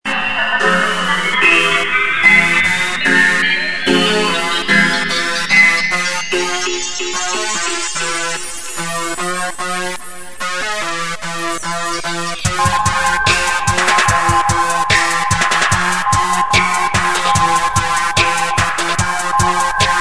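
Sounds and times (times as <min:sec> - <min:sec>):
roots dub music: 0:00.1 - 0:19.9.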